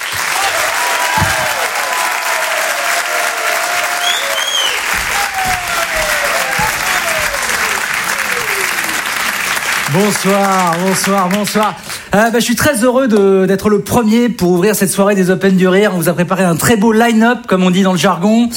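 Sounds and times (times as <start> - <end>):
audience applause: 0.0 - 12.0
scattered cheers and whistles: 0.1 - 9.3
speech: 9.9 - 18.5.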